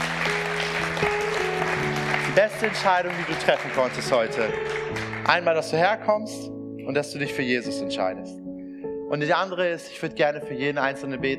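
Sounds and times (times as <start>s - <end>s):
audience applause: 0.0s - 5.7s
speech: 2.4s - 8.4s, 9.1s - 11.3s.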